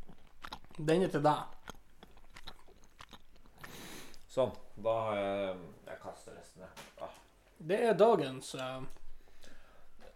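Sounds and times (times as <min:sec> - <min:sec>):
chewing and smacking while eating a snack: 0:00.0 - 0:04.7, 0:08.5 - 0:10.1
speech: 0:00.8 - 0:01.6, 0:04.4 - 0:06.9, 0:07.6 - 0:09.0.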